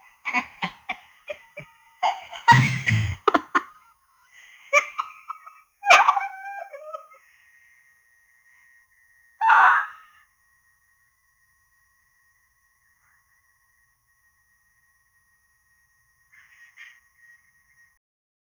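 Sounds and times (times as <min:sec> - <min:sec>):
terrifying pixelated laugh: 0:00.0 - 0:07.2, 0:09.4 - 0:10.1.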